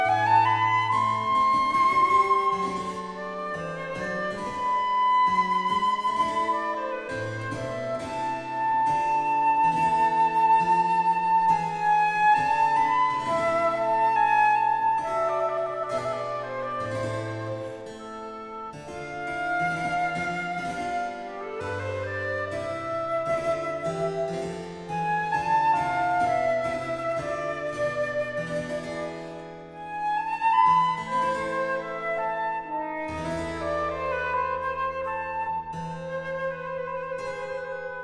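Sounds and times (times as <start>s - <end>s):
flute and harpsichord sonata in C major: 0.0s - 38.0s.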